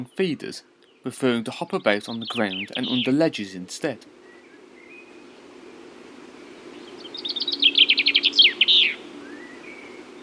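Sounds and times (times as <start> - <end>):
chaffinch singing: 0.0 - 3.6, 4.2 - 10.2
speech: 0.0 - 4.2
faint low hum: 0.0 - 10.2.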